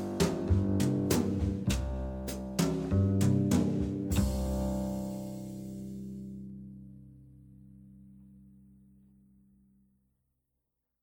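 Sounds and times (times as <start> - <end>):
backing track music: 0.0 - 6.3.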